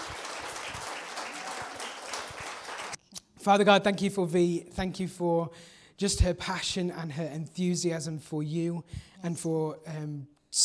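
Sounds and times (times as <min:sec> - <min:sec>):
audience applause: 0:00.0 - 0:03.0
speech: 0:03.4 - 0:10.6.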